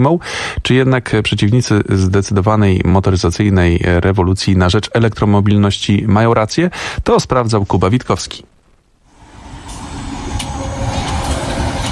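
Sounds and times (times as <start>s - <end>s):
speech: 0.0s - 8.5s
electric city bus in Oslo rumbling: 9.1s - 11.9s.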